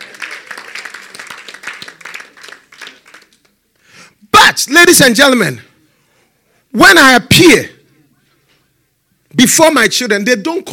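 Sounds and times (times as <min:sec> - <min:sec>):
audience clapping: 0:00.0 - 0:03.7
speech: 0:04.6 - 0:05.7, 0:06.8 - 0:07.7, 0:09.4 - 0:10.7.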